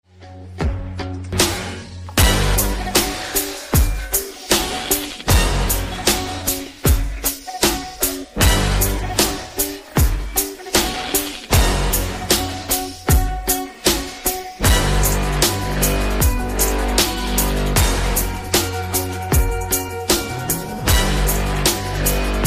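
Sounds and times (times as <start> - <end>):
instrumental music: 0.1 - 22.4.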